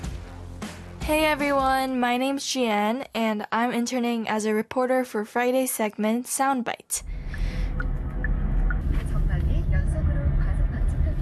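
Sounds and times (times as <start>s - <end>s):
speech: 1.1s - 7.1s
car engine and road noise inside a moving car: 7.2s - 11.2s.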